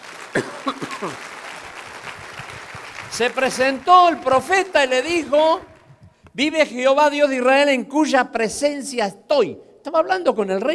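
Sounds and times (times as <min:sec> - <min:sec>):
audience applause: 0:00.0 - 0:05.9
speech: 0:00.4 - 0:01.4, 0:03.1 - 0:05.7, 0:06.4 - 0:10.7.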